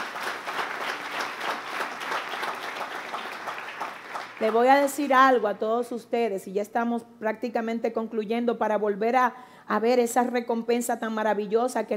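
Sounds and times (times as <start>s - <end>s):
audience applause: 0.0s - 5.0s
speech: 4.4s - 11.9s.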